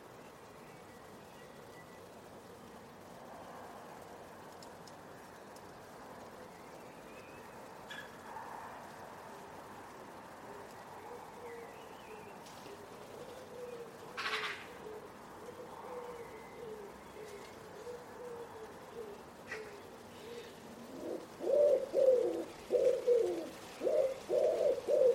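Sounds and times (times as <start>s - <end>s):
Common Wood Pigeon cooing: 10.3s - 25.1s.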